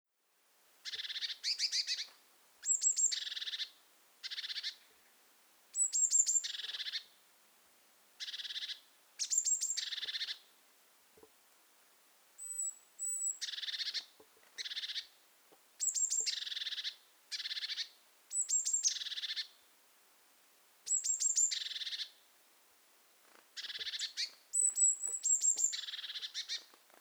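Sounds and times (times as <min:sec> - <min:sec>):
Eurasian blue tit calling: 0:00.8 - 0:04.8, 0:08.2 - 0:10.4, 0:12.4 - 0:15.1, 0:15.8 - 0:19.5, 0:20.9 - 0:22.1, 0:23.6 - 0:26.7.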